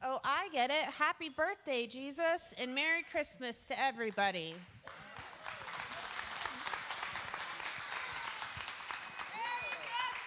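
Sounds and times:
speech: 0:00.5 - 0:04.8
audience applause: 0:04.9 - 0:10.2.

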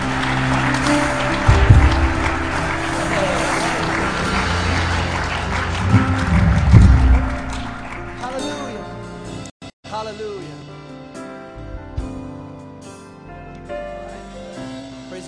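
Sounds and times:
audience hand clap of praise: 0:00.0 - 0:09.5.

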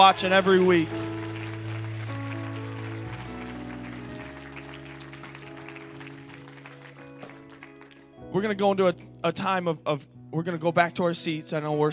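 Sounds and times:
speech: 0:00.0 - 0:01.0, 0:08.4 - 0:11.9
audience clapping hands: 0:00.0 - 0:08.2.

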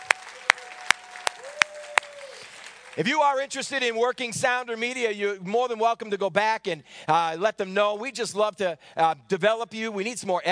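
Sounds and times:
audience applause: 0:00.0 - 0:03.1
speech: 0:03.0 - 0:10.5.

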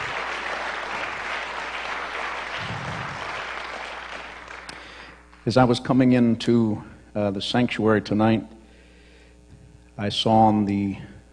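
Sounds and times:
audience hand clapping: 0:00.0 - 0:05.4
speech: 0:05.5 - 0:08.6, 0:10.0 - 0:11.1.

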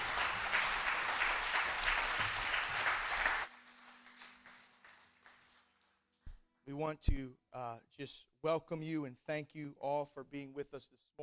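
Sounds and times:
congregation clapping for the choir at an Easter morning church service: 0:00.0 - 0:06.0
speech: 0:06.8 - 0:11.2.

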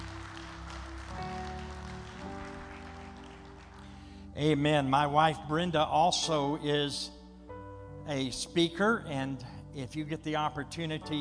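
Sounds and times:
audience hand clapping: 0:00.0 - 0:04.2
speech: 0:04.4 - 0:07.2, 0:08.1 - 0:11.1.

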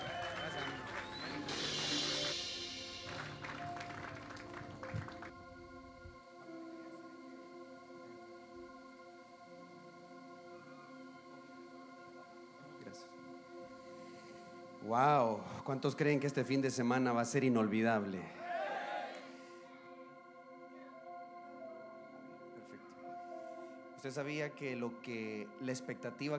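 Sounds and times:
audience applause: 0:00.0 - 0:05.4
speech: 0:14.9 - 0:18.4, 0:24.0 - 0:26.3.

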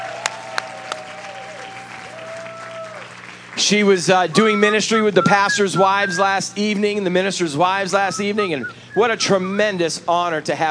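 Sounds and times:
audience applause: 0:00.0 - 0:07.0
speech: 0:03.6 - 0:10.6.

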